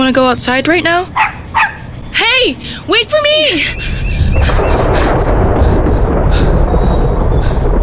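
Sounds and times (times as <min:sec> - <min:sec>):
speech: 0:00.1 - 0:01.4, 0:02.4 - 0:04.7
thunder from an approaching storm: 0:03.9 - 0:07.8.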